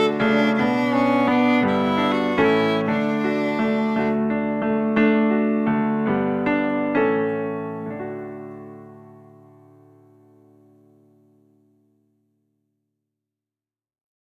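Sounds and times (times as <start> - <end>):
instrumental lullaby: 0.0 - 11.3.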